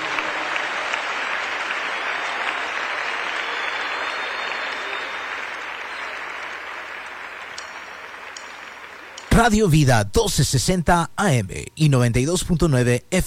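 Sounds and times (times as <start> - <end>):
crowd applauding: 0.0 - 9.6
speech: 9.4 - 13.2.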